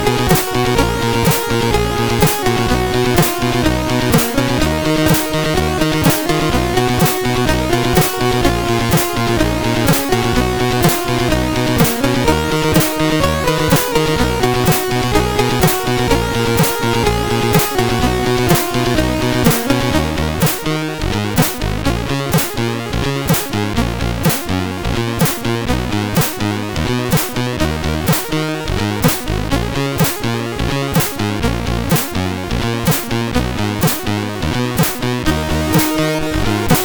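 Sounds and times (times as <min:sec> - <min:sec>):
SID MOS6581R3 chip alternate bass: 0:00.0 - 0:36.8.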